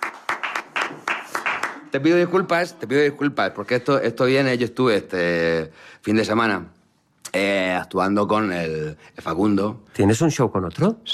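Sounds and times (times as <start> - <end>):
sparse audience clapping: 0.0 - 1.9
speech: 1.9 - 11.1.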